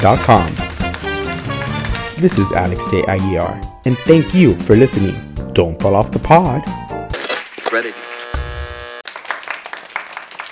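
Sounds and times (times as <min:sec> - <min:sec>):
speech: 0:00.0 - 0:00.6, 0:02.2 - 0:06.8, 0:07.7 - 0:08.0
audience applause: 0:00.0 - 0:02.2, 0:09.0 - 0:10.5
brief buzzing musical tone: 0:07.2 - 0:09.0.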